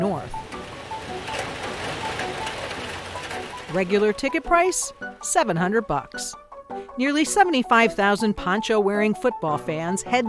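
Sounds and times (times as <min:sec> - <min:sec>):
torrential downpour of rain: 0:00.0 - 0:05.6
speech: 0:03.7 - 0:06.4, 0:07.0 - 0:10.2.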